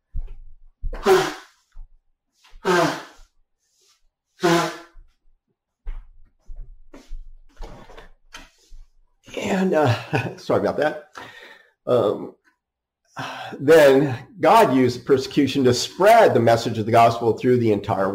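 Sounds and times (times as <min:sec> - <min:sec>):
loud forceful nose blows: 0:00.9 - 0:01.7, 0:02.5 - 0:03.4, 0:04.4 - 0:05.0
softer sniffles: 0:02.6 - 0:03.3
speech: 0:09.6 - 0:11.2, 0:11.9 - 0:12.4, 0:13.2 - 0:18.1.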